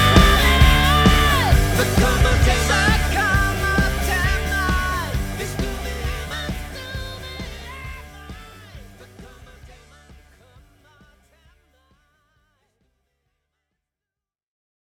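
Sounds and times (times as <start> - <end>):
music medley: 0.0 - 8.4.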